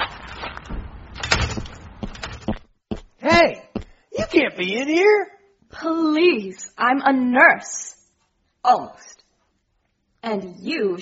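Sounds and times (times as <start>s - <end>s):
door being opened: 0.3s - 2.6s
speech: 3.2s - 3.6s, 4.4s - 7.9s, 8.6s - 9.2s, 10.2s - 10.9s.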